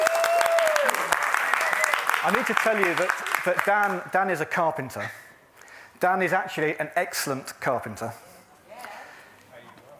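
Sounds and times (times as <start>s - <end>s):
audience clapping: 0.0s - 4.1s
speech: 2.2s - 5.2s, 6.0s - 8.3s.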